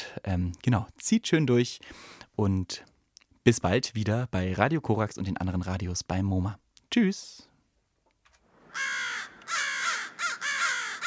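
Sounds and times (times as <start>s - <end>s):
speech: 0.2s - 7.5s
crows cawing: 8.7s - 11.0s.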